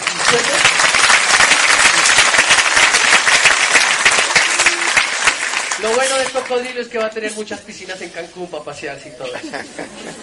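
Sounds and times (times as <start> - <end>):
audience applause: 0.0 - 6.6
speech: 0.3 - 0.7, 5.8 - 10.2
laughter: 9.2 - 10.2.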